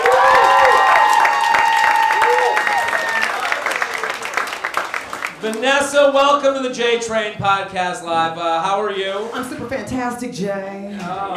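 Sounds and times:
cheers and whoops: 0.0 - 3.9
audience applause: 0.0 - 6.1
speech: 5.6 - 11.3.

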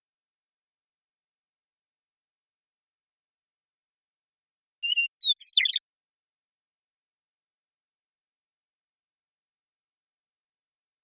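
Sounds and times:
western meadowlark whistling song: 4.8 - 5.8.

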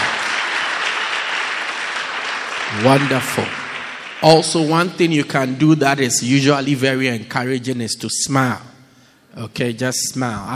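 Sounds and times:
crowd clapping: 0.0 - 5.6
speech: 2.7 - 3.6, 4.2 - 8.7, 9.3 - 10.5.

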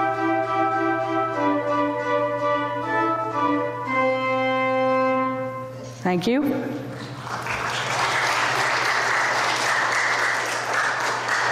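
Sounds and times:
low steady hum: 0.0 - 8.6
speech: 6.0 - 6.8
audience applause for organ player: 6.9 - 11.5.

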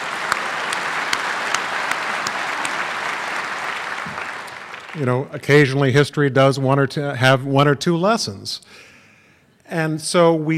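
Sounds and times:
audience clapping: 0.0 - 5.7
speech: 5.0 - 8.9, 9.7 - 10.5.

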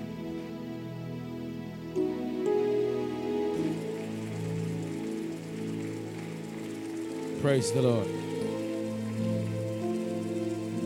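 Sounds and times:
sustained low musical tones: 0.0 - 10.8
audience clapping: 3.1 - 10.8
speech: 7.4 - 8.2.

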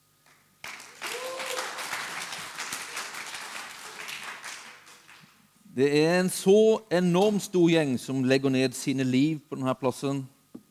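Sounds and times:
applause: 0.2 - 5.5
speech: 5.8 - 10.4.

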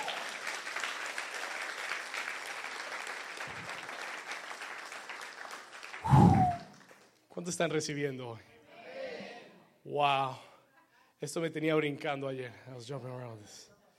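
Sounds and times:
audience applauding loudly: 0.0 - 7.1
speech: 7.4 - 8.5, 9.9 - 10.5, 11.2 - 13.7.

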